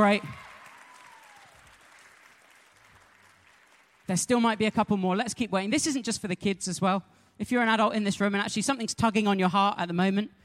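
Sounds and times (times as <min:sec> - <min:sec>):
speech: 0:00.0 - 0:00.4, 0:04.1 - 0:10.4
small round of applause: 0:00.0 - 0:04.1.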